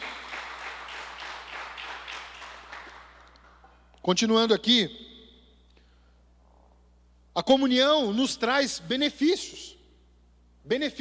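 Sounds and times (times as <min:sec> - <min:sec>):
audience applauding: 0:00.0 - 0:03.7
speech: 0:04.1 - 0:05.1, 0:07.4 - 0:09.8, 0:10.7 - 0:10.9.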